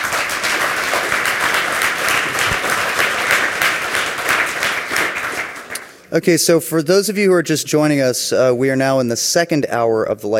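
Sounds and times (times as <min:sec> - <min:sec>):
audience applause: 0:00.0 - 0:05.9
speech: 0:06.1 - 0:10.3.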